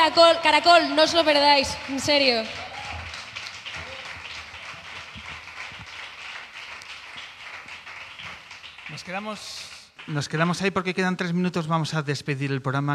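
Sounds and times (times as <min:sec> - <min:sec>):
speech: 0:00.0 - 0:02.7, 0:09.0 - 0:12.9
crowd applause: 0:01.6 - 0:10.6.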